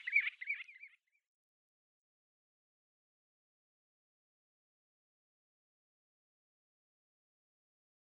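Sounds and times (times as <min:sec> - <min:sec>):
common ringed plover calling: 0:00.0 - 0:01.0.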